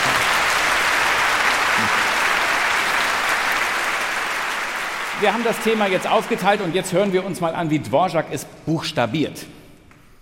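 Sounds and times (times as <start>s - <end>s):
audience applause: 0.0s - 7.4s
speech: 5.2s - 9.6s.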